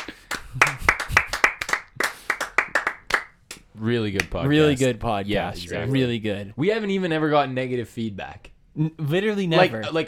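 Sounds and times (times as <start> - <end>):
clapping: 0.0 - 3.6
speech: 3.8 - 10.0.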